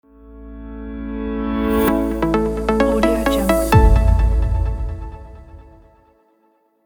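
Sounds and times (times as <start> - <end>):
tech digital news logo jingle: 1.9 - 5.8.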